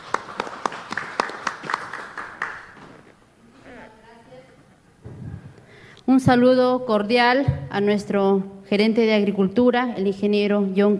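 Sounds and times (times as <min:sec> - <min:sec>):
applause: 0:00.0 - 0:03.0
speech: 0:06.1 - 0:10.9.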